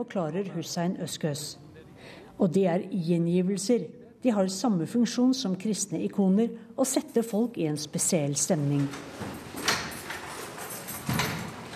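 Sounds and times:
speech: 0:00.0 - 0:09.4
door to a huge meeting room being locked: 0:08.8 - 0:11.7.

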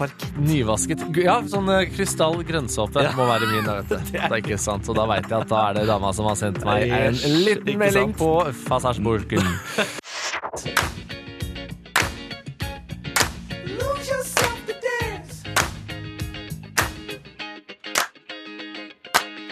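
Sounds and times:
speech: 0:00.0 - 0:10.0
music with sustained pitched tones: 0:00.0 - 0:19.5
laughter: 0:03.0 - 0:08.2, 0:09.3 - 0:10.0
sliding melodic voice-like line: 0:06.8 - 0:08.2
sharp hand claps: 0:10.7 - 0:11.2, 0:11.9 - 0:12.4, 0:13.1 - 0:14.8, 0:15.4 - 0:16.0, 0:16.7 - 0:17.2, 0:17.9 - 0:18.2, 0:19.1 - 0:19.5.

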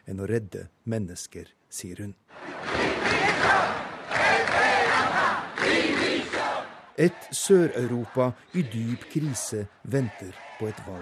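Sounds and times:
speech: 0:00.1 - 0:05.9, 0:07.0 - 0:11.0
large protest crowd shouting in the streets: 0:02.4 - 0:09.5, 0:10.1 - 0:11.0.

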